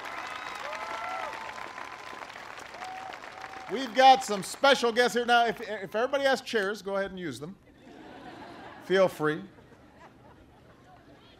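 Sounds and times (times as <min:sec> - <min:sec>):
audience applause: 0:00.0 - 0:05.8
speech: 0:03.7 - 0:07.6, 0:08.9 - 0:09.6
laughter: 0:07.7 - 0:11.3.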